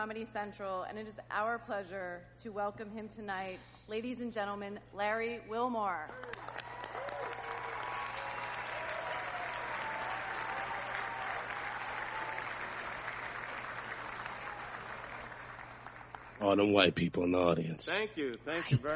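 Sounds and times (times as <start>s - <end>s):
speech: 0.0s - 6.6s, 16.4s - 18.9s
cheers and whoops: 6.2s - 12.8s
audience applause: 6.2s - 16.7s.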